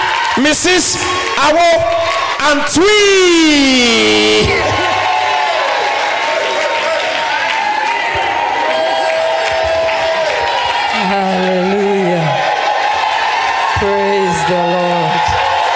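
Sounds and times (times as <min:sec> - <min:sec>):
church congregation applauding a welcome: 0:00.0 - 0:15.7
church congregation cheering and whooping: 0:00.0 - 0:15.7
many voices shouting together: 0:00.0 - 0:15.7
speech: 0:00.4 - 0:04.9.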